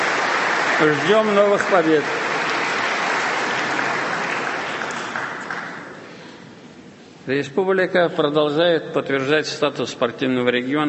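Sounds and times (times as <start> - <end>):
applause for athletes including synchronized divers at an official ceremony: 0.0 - 6.2
speech: 0.8 - 2.2, 7.2 - 10.8.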